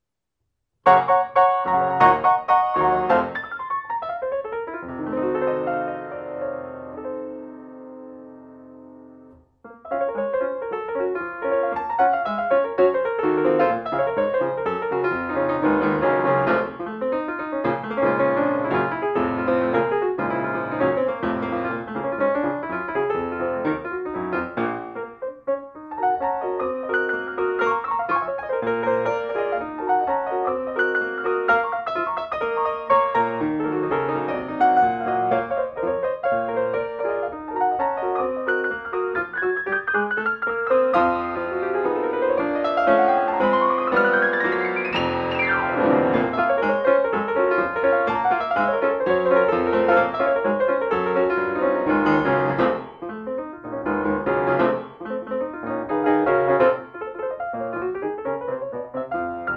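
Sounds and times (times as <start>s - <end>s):
jazz piano solo: 0.8s - 59.5s.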